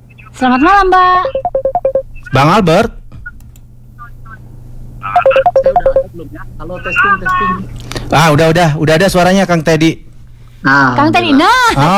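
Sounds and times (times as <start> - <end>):
speech: 0.4 - 1.5, 2.3 - 3.0, 5.3 - 11.9
WhatsApp phone call ringing beeps: 1.2 - 2.4, 5.2 - 6.1.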